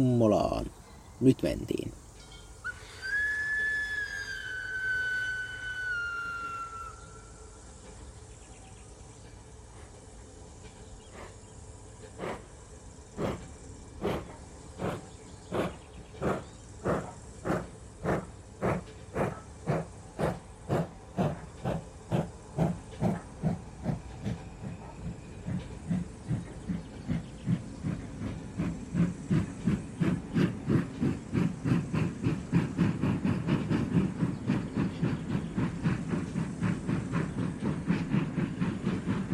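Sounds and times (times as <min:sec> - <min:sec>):
speech: 0:00.0 - 0:02.0
little locomotive chuffing as the train gets under way: 0:00.0 - 0:39.3
little locomotive whistle: 0:02.6 - 0:07.6.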